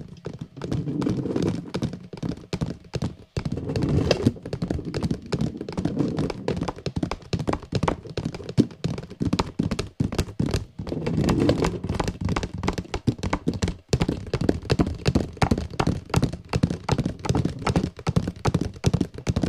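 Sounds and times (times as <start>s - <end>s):
fingers tapping on a small vase and boxes: 0.0s - 19.4s.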